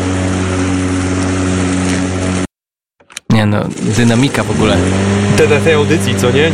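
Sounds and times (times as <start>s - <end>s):
lawn mower running: 0.0s - 2.5s, 3.4s - 6.5s
speech: 3.4s - 6.5s.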